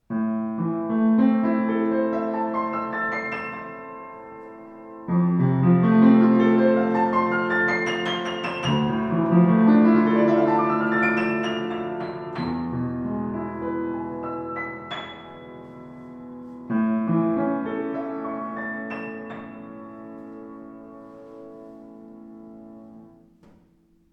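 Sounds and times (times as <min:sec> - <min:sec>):
Sauter piano: 0:00.0 - 0:24.1.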